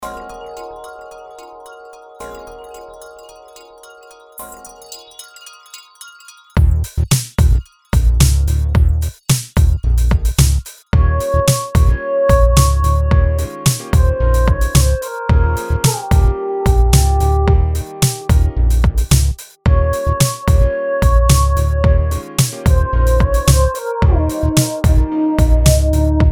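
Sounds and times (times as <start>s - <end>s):
jazz music: 6.6s - 26.3s.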